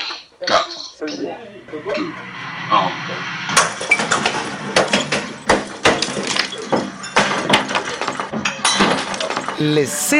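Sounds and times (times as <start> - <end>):
speech: 0.5 - 3.3, 9.6 - 10.1
low steady rumble: 1.4 - 5.8
glass and crockery being smashed: 4.8 - 9.6.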